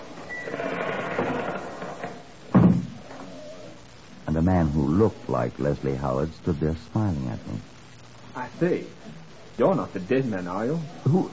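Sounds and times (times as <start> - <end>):
door slowly creaking open: 0.2 - 3.4
speech: 4.4 - 7.8, 8.6 - 11.3.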